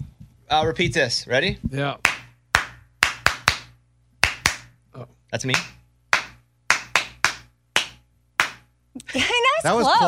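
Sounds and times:
faint low hum: 0.0s - 10.0s
speech: 0.5s - 2.1s, 5.0s - 5.8s, 9.0s - 10.0s
hand claps: 2.0s - 4.8s, 5.4s - 8.7s.

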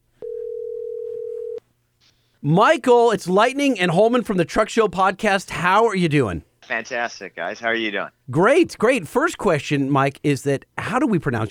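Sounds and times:
telephone dial tone: 0.2s - 1.6s
speech: 2.4s - 11.4s.

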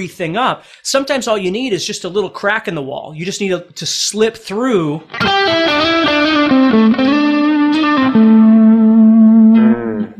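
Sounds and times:
speech: 0.0s - 8.2s
blues electric guitar played with a slide through distortion effects: 5.1s - 10.1s.

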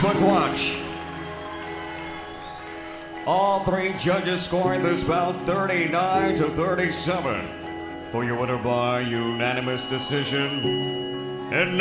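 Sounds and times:
audience applause: 0.0s - 4.8s
speech: 0.1s - 0.9s, 3.2s - 11.7s.

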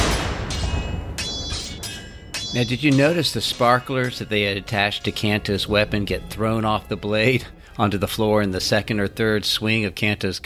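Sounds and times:
violent explosion from impact on a large stone column: 0.0s - 1.2s
speech: 2.5s - 10.4s.

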